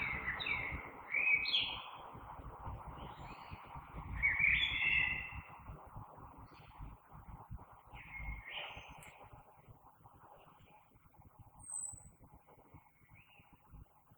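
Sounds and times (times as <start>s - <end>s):
common blackbird warbled song: 0.0s - 7.0s, 7.9s - 9.7s, 11.6s - 13.8s.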